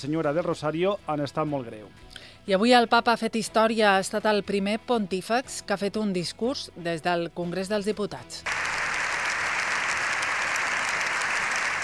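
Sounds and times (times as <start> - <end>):
speech: 0.0 - 8.6
ovation applause: 8.5 - 11.8.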